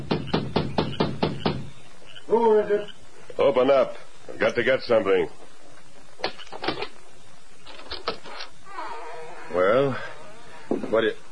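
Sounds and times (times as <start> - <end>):
knocking on a wooden door: 0.0 - 1.7
speech: 2.3 - 5.4, 9.5 - 10.1, 10.7 - 11.2.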